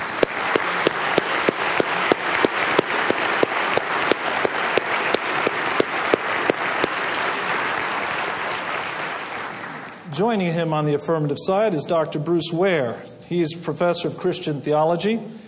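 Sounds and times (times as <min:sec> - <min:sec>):
audience applause welcoming a debate speaker: 0:00.0 - 0:10.0
speech: 0:10.2 - 0:15.4.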